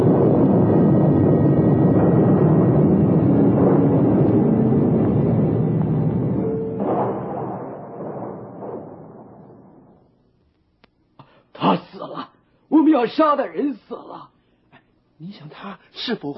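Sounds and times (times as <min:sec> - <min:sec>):
thunder: 0:00.0 - 0:10.5
speech: 0:13.0 - 0:14.3, 0:15.2 - 0:16.3.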